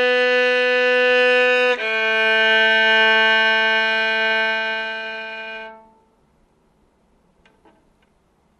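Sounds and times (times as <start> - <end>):
A major scale played: 0.0 - 6.2.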